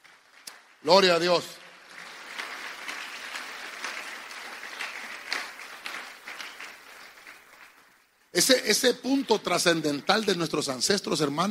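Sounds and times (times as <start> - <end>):
audience clapping: 0.0 - 11.4
speech: 0.8 - 1.6, 8.4 - 11.4.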